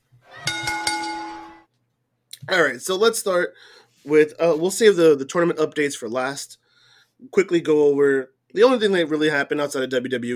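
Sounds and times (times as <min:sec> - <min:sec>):
bell ringing: 0:00.4 - 0:01.6
speech: 0:02.5 - 0:06.6, 0:07.2 - 0:10.3.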